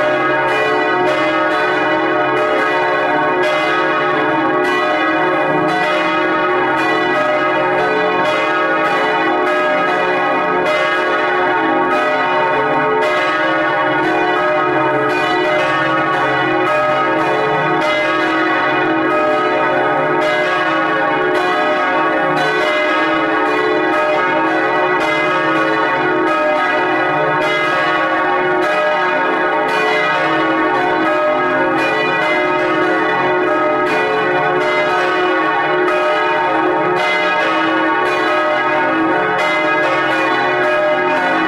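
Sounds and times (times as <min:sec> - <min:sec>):
church bells ringing in full peal: 0:00.0 - 0:41.4.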